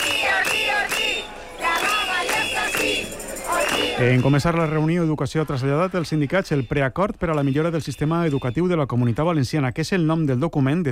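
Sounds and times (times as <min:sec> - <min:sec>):
crowd of protesting teachers chanting: 0:00.0 - 0:04.8
speech: 0:04.0 - 0:10.9.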